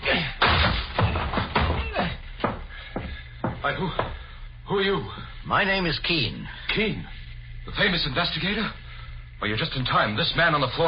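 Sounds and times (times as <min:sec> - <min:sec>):
door being broken down: 0:00.4 - 0:02.2
speech: 0:03.6 - 0:08.8, 0:09.4 - 0:10.8.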